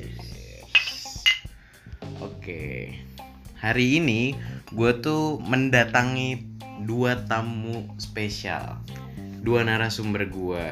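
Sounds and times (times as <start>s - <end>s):
glasses clinking in a toast: 0.7s - 1.5s
speech: 2.4s - 10.7s.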